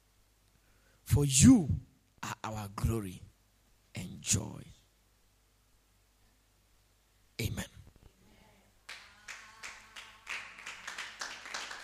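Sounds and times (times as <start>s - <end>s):
speech: 1.2s - 3.3s, 4.0s - 4.8s
crowd clapping in a steady rhythm: 8.8s - 11.8s.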